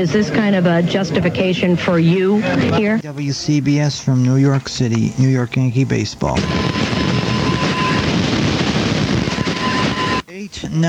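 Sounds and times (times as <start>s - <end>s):
speech: 0.0s - 7.0s, 10.6s - 10.8s
radio hiss and crackling static: 2.0s - 10.8s
heterodyne whistle on AM radio: 6.3s - 10.4s.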